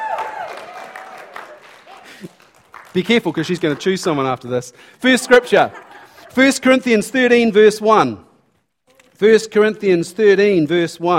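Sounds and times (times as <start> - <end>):
crowd cheering and clapping: 0.0 - 4.2
laughter: 1.8 - 2.5, 5.0 - 7.0
speech: 2.2 - 8.3, 9.2 - 11.1.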